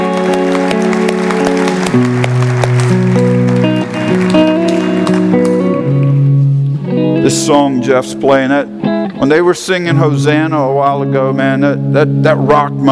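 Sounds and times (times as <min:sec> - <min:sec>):
audience applause: 0:00.0 - 0:06.2
speech: 0:07.3 - 0:12.9.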